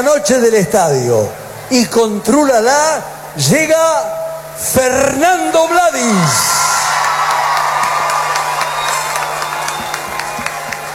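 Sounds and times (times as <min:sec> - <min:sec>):
speech: 0:00.0 - 0:06.5
audience applause and cheering: 0:06.0 - 0:10.9.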